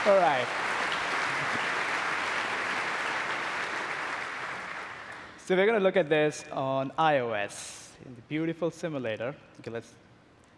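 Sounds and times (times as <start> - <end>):
speech: 0.0 - 0.8, 5.5 - 10.0
audience clapping: 0.0 - 5.4.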